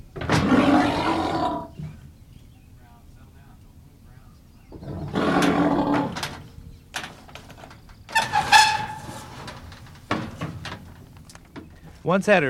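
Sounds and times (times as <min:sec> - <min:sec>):
muskox cow bellowing in protest: 0:00.2 - 0:02.0, 0:04.7 - 0:06.6
clattering and knocking: 0:05.4 - 0:12.0.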